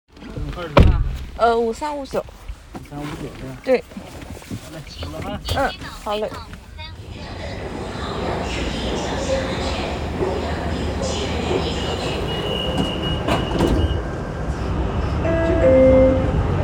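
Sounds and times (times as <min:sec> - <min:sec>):
speech: 0:00.6 - 0:06.6, 0:11.5 - 0:12.3
subway train rumbling: 0:04.4 - 0:16.6.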